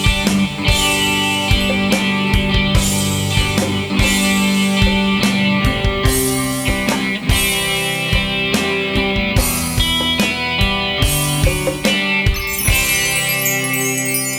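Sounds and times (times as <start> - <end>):
ambient electric guitar music: 0.0 - 14.3.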